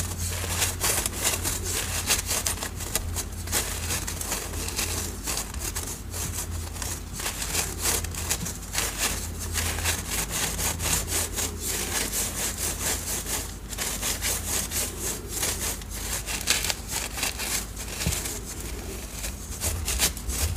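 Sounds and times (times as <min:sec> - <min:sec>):
dyed chalk cubes and cornstarch crunching: 0:00.0 - 0:20.5
paste mixing: 0:00.0 - 0:20.5.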